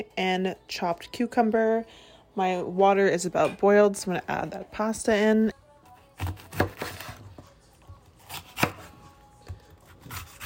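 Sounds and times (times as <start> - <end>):
speech: 0.0 - 5.6
knife slicing green peppers into slivers: 6.0 - 10.4.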